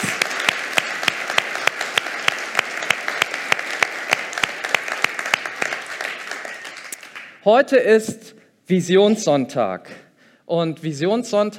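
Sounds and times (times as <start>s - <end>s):
audience applause: 0.0s - 7.4s
speech: 7.4s - 11.5s.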